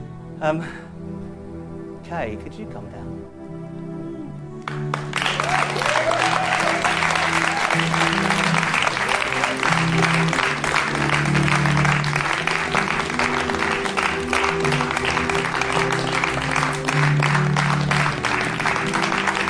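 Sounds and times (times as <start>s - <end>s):
speech: 0.4s - 0.8s, 2.1s - 3.4s
audience clapping: 4.6s - 19.4s.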